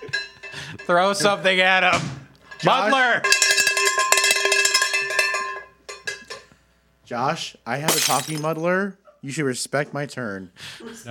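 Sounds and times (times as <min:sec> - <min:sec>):
talking cowbell: 0:00.0 - 0:01.0, 0:02.5 - 0:06.4
speech: 0:00.8 - 0:03.3, 0:07.1 - 0:11.0.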